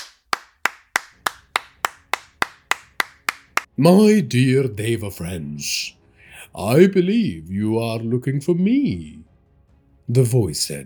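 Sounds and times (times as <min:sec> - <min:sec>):
mocking hand claps: 0:00.0 - 0:03.7
speech: 0:03.8 - 0:06.0, 0:06.6 - 0:09.3, 0:10.1 - 0:10.8.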